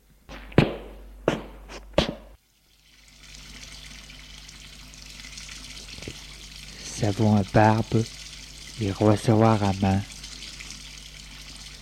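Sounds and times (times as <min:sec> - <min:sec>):
sharp knocks: 0:00.3 - 0:02.4
water running from a tap into a bathroom sink: 0:02.7 - 0:11.8
speech: 0:07.0 - 0:08.2, 0:08.8 - 0:10.1.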